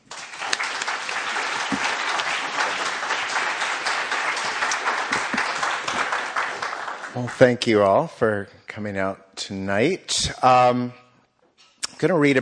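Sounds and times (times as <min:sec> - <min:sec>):
audience applause at an evening reading: 0:00.0 - 0:07.7
speech: 0:07.2 - 0:11.0, 0:12.0 - 0:12.4.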